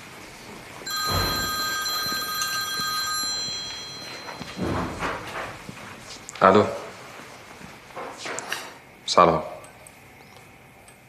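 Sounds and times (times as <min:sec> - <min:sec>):
telephone bell ringing: 0:00.9 - 0:05.3
speech: 0:06.4 - 0:06.8, 0:09.2 - 0:09.5.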